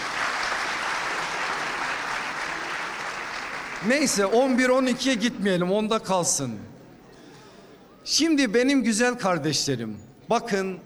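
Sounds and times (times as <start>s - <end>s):
crowd applauding: 0.0s - 4.6s
speech: 3.8s - 6.7s, 8.1s - 10.8s.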